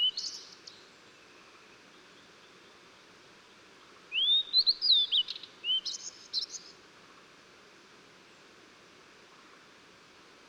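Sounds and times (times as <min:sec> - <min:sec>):
Blue-and-white flycatcher song of clear slurred whistles and sharp high notes: 0:00.0 - 0:00.8, 0:04.1 - 0:06.7.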